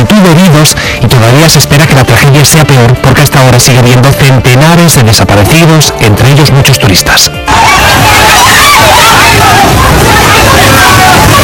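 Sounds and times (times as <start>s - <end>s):
speech: 0.2s - 9.0s
terrified crowd screaming at a flood torrent: 7.4s - 11.4s
loud rushing torrent of floodwater: 7.5s - 11.4s.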